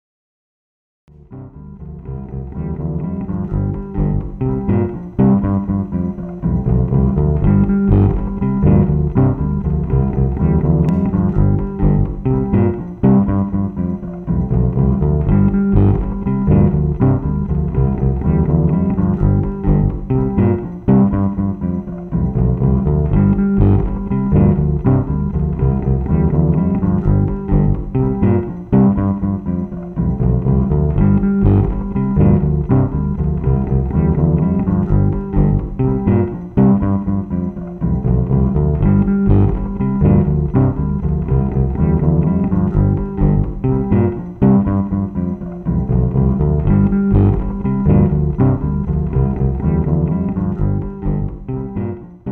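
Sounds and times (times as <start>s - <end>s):
bass: 1.1s - 52.3s.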